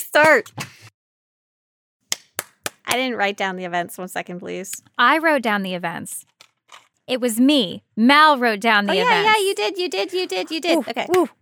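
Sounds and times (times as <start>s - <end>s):
speech: 0.0s - 0.8s, 2.9s - 11.3s
hand clap to mark a restart: 2.1s - 3.0s, 11.0s - 11.3s.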